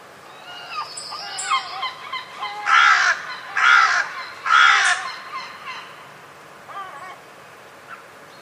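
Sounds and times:
bird cawing raspily: 0:00.3 - 0:06.0.

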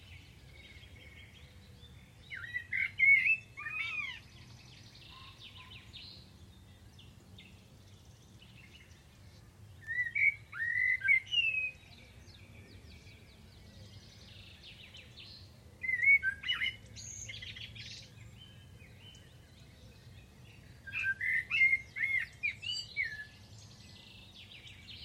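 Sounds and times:
bird whistled song: 0:02.2 - 0:06.2, 0:09.8 - 0:13.2, 0:14.0 - 0:19.3, 0:20.8 - 0:25.0.

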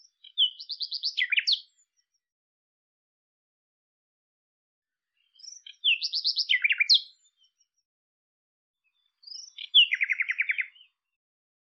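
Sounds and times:
bird song: 0:00.0 - 0:02.3, 0:04.8 - 0:07.9, 0:08.8 - 0:11.2.

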